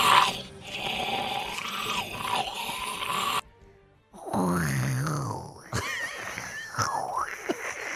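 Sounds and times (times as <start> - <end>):
Walking Dead zombie groans sound effect: 0.0 - 3.4, 4.2 - 7.9.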